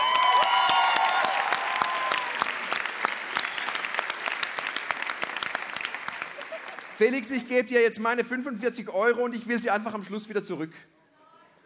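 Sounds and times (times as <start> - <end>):
audience applause: 0.0 - 7.5
high whistle-like tones: 3.3 - 4.0
speech: 7.0 - 11.0.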